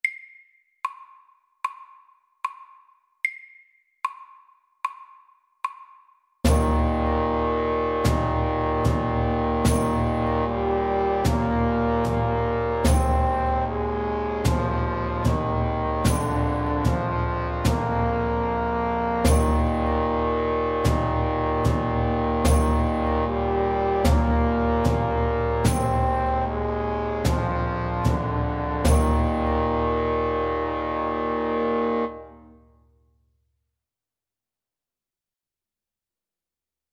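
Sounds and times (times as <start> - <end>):
slow English melody: 6.5 - 32.7.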